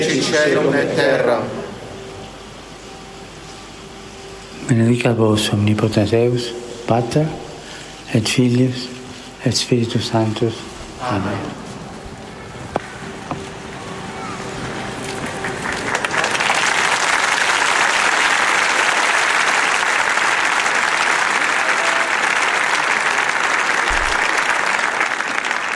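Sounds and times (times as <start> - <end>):
speech: 0.0 - 1.6, 4.7 - 7.4, 8.1 - 11.6
large crowd applauding in a square: 14.4 - 25.7.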